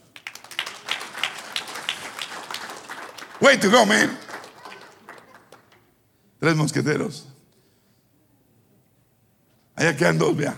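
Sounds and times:
crowd applauding: 0.0s - 6.0s
speech: 3.4s - 4.2s, 6.4s - 7.3s, 9.8s - 10.5s.

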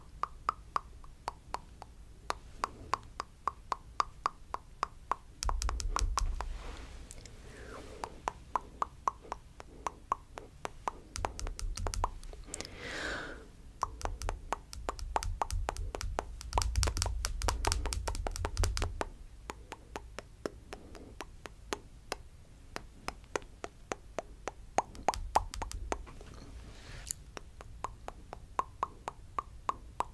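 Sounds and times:
camera tapping: 0.0s - 6.6s, 8.0s - 12.7s, 13.8s - 22.2s, 22.8s - 26.4s
wet mouth sounds: 0.0s - 30.1s
soft breathy sweep: 6.4s - 10.0s, 12.4s - 13.6s.

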